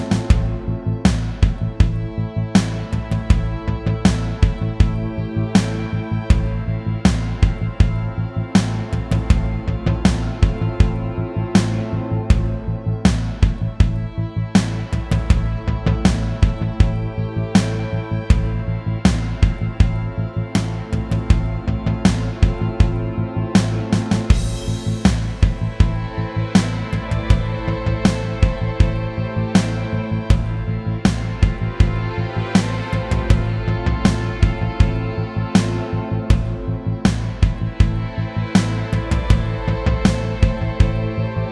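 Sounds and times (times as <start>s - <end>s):
ballad in A minor: 0.0s - 41.5s.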